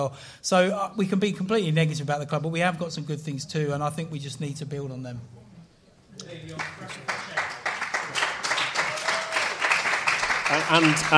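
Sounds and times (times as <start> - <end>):
speech: 0.0 - 5.4, 6.2 - 7.4, 10.5 - 11.1
audience applause: 6.4 - 11.1.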